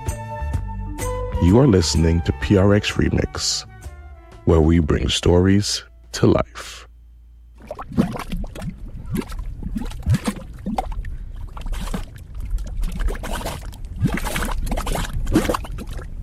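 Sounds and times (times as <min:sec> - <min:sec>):
speech: 0:01.4 - 0:03.7, 0:04.5 - 0:06.9, 0:07.9 - 0:08.2
low churning rumble: 0:07.3 - 0:16.2
thick mud pots bubbling: 0:07.5 - 0:16.2.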